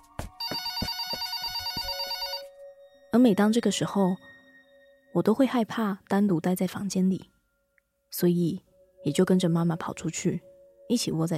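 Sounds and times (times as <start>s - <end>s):
home telephone ringing: 0.4s - 2.6s
speech: 3.2s - 4.3s, 5.2s - 7.3s, 8.1s - 11.3s.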